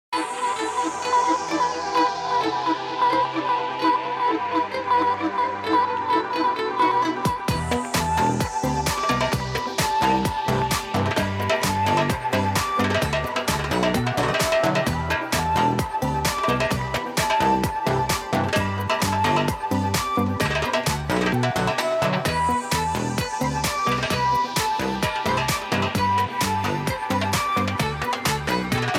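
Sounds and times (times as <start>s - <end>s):
Arab music: 0.2s - 28.9s.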